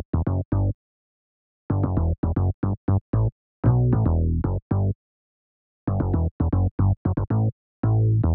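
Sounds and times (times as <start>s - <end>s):
bass line in A minor: 0.0s - 0.8s, 1.7s - 5.0s, 5.9s - 8.3s.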